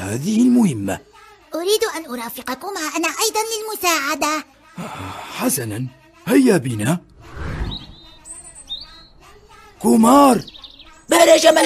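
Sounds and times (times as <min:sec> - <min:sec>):
speech: 0:00.1 - 0:07.1, 0:09.8 - 0:11.6
soft low rumble: 0:07.1 - 0:08.3
small injured sparrow chirping: 0:07.7 - 0:11.6.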